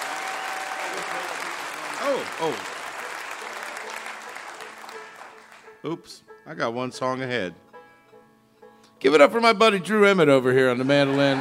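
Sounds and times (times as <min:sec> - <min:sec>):
swooping cheers and whoops: 0:00.0 - 0:02.3
crowd applause: 0:00.0 - 0:05.8, 0:10.8 - 0:11.3
speech: 0:02.0 - 0:02.8, 0:05.8 - 0:07.6, 0:09.0 - 0:11.3
laughter: 0:10.6 - 0:11.3.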